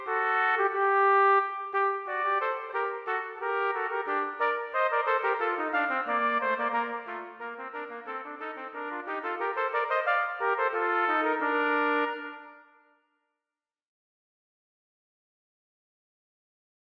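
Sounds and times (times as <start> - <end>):
trumpet duet playing a gavotte and bourrée: 0.0 - 12.8.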